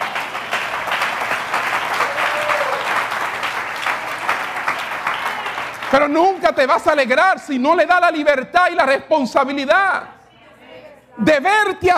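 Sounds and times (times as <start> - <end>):
audience applause: 0.0 - 6.6
speech: 5.9 - 10.2, 11.2 - 11.9.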